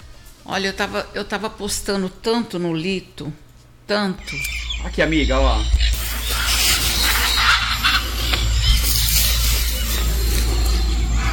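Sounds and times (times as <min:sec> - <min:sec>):
speech: 0:00.5 - 0:05.9
angry dog breathing: 0:04.3 - 0:11.3.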